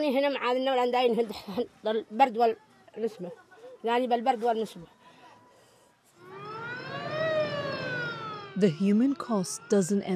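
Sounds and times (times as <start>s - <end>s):
speech: 0.0s - 5.0s, 8.6s - 10.1s
ambulance siren: 4.9s - 10.1s.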